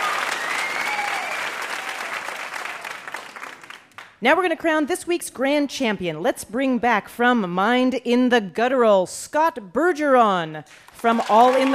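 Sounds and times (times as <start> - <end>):
audience applause: 0.0 - 4.1, 11.0 - 11.7
speech: 4.2 - 11.7.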